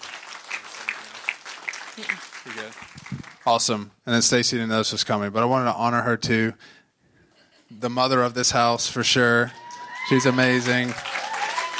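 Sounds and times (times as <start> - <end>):
crowd clapping: 0.0 - 3.7, 9.4 - 11.7
speech: 2.0 - 6.8, 7.7 - 11.1.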